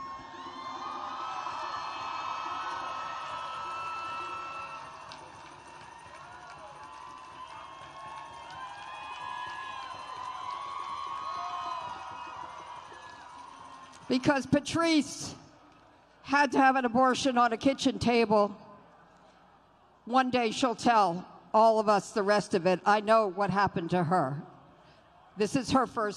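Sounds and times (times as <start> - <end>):
crowd applauding and cheering: 0.0 - 14.1
speech: 14.1 - 15.4, 16.3 - 18.6, 20.1 - 24.5, 25.4 - 26.1.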